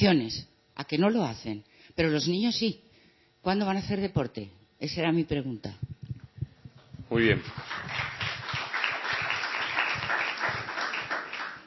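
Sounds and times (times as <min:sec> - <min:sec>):
speech: 0:00.0 - 0:02.8, 0:03.4 - 0:05.8, 0:07.1 - 0:07.9
audience applause: 0:07.4 - 0:11.6.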